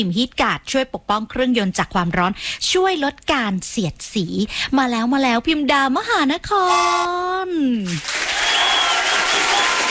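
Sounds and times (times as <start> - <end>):
speech: 0.0 - 8.7
crowd applauding in welcome: 8.0 - 9.8.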